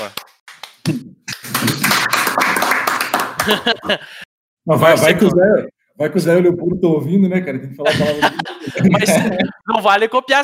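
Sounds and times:
people clapping hands: 0.0 - 4.0
speech: 0.8 - 1.8, 3.4 - 10.4
laughter: 3.3 - 4.3, 7.8 - 9.6.

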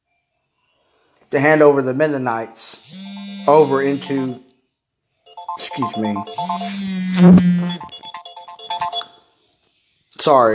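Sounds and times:
speech: 1.3 - 4.5, 5.8 - 7.9, 10.2 - 10.5
phone alarm playing an electronic melody: 2.9 - 4.4, 5.3 - 9.2.

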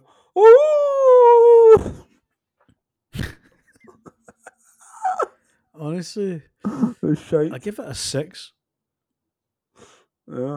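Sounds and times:
speech: 0.4 - 0.7, 6.0 - 8.6, 10.3 - 10.5
person imitating wolf howl: 0.4 - 2.1
laughter: 3.7 - 5.4, 6.6 - 7.6
breathy bursts: 6.6 - 7.2.

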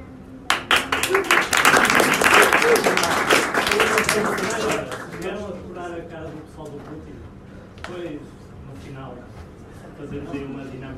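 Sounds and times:
audience applause: 0.5 - 5.4
speech: 4.2 - 10.9.

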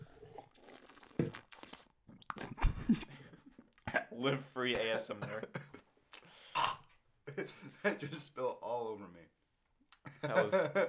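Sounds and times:
drinking water from a cup near microphone: 0.0 - 4.1
speech: 4.1 - 5.6, 7.8 - 9.4, 10.2 - 10.8
laughter: 7.3 - 8.2, 10.1 - 10.8.

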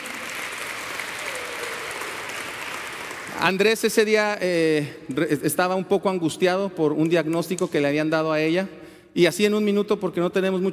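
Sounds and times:
audience applause: 0.0 - 3.7
speech: 3.4 - 10.7.

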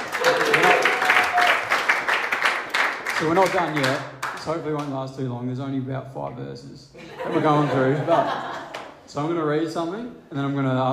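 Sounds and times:
audience applause: 0.0 - 4.4
speech: 3.2 - 8.4, 9.1 - 10.9
laughter: 7.0 - 8.9.

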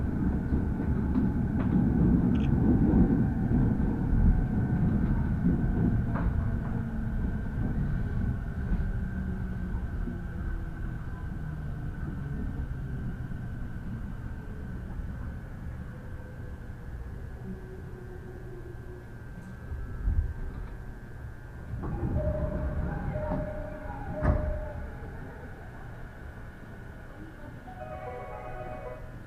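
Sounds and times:
Uchibo Line rapid train rumble: 0.0 - 29.2
high tones: 27.7 - 29.2.

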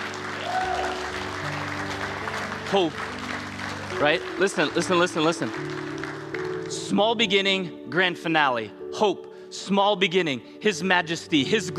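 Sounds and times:
audience applauding: 0.0 - 7.0
speech: 2.7 - 3.2, 4.0 - 5.9, 6.9 - 11.7.

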